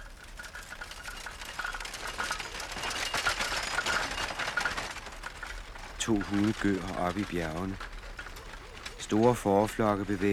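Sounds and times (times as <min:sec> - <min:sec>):
horse-drawn cart passing by: 0:00.0 - 0:10.3
speech: 0:06.1 - 0:07.9, 0:09.1 - 0:10.3.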